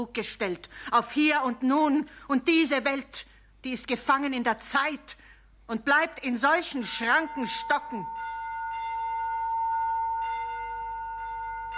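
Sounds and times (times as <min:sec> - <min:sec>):
speech: 0:00.0 - 0:08.2
bells ringing: 0:06.8 - 0:11.7.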